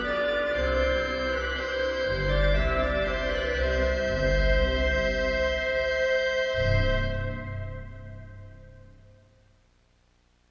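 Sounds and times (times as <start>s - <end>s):
OrganTeq organ reeds: 0.0s - 9.4s.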